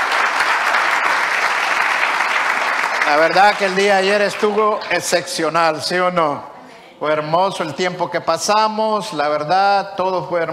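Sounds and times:
audience applause: 0.0 - 5.2
speech: 3.1 - 10.5.

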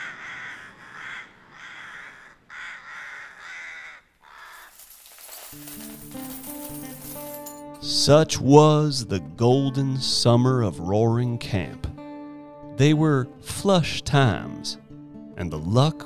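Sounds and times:
rooks cawing: 0.0 - 4.1
metallic clinks and chiming tones: 4.6 - 7.6
speech: 5.5 - 6.2, 7.8 - 11.9, 12.8 - 14.8, 15.4 - 16.0.

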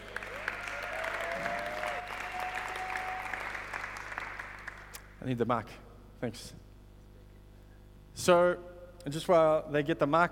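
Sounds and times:
crowd applauding: 0.0 - 5.0
speech: 5.2 - 6.6, 8.2 - 10.3.

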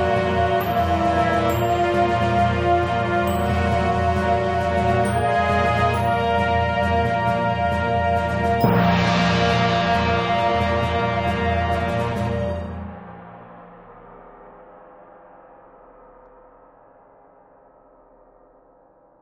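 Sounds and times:
alternate battle theme music: 0.0 - 14.6.

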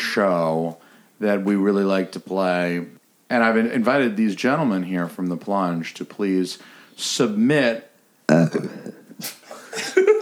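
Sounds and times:
speech: 0.2 - 9.9
loud low throaty belch: 8.3 - 9.0
breathy throaty noises: 8.3 - 9.8.

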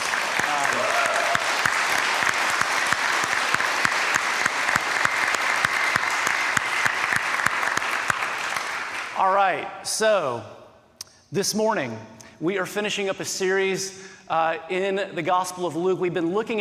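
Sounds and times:
clapping: 0.0 - 9.2
speech: 9.5 - 10.6, 11.3 - 16.5.

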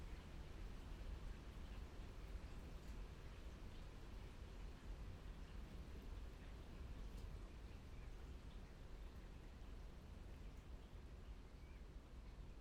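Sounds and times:
steady rain near Aschberg: 0.0 - 12.5.

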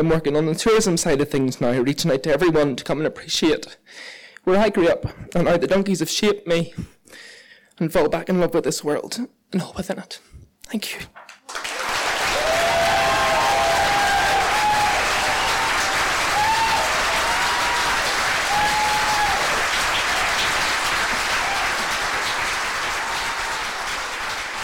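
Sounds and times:
speech: 0.0 - 11.7
large audience applauding in a standing ovation: 11.3 - 24.6
whistles and cheers: 11.8 - 20.6, 21.2 - 22.0, 22.8 - 24.6.

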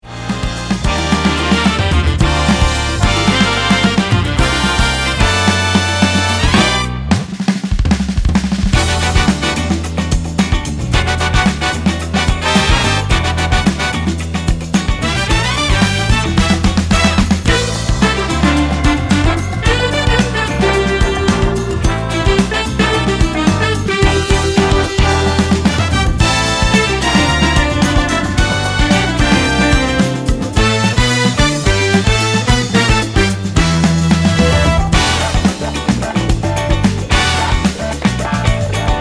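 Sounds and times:
funk music: 0.0 - 38.9.

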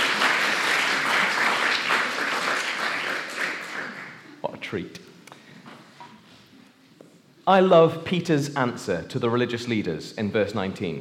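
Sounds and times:
birthday round of applause from a group: 0.0 - 4.4
speech: 4.7 - 5.0, 7.5 - 10.9.

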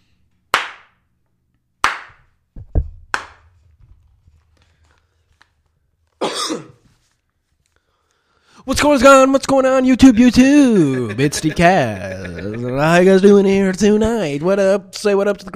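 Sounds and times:
hand claps: 0.5 - 1.1, 1.8 - 3.5
speech: 6.4 - 6.8, 8.7 - 15.5
laughter: 10.6 - 13.4.

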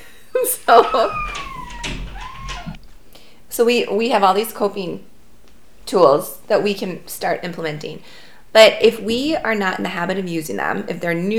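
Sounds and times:
dog making noise: 0.4 - 2.8
speech: 0.7 - 1.4, 3.6 - 5.1, 5.9 - 11.3.

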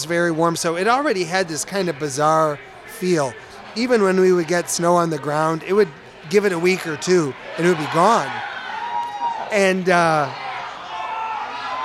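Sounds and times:
speech: 0.0 - 8.5, 9.5 - 10.4
crowd cheering: 0.0 - 11.8.

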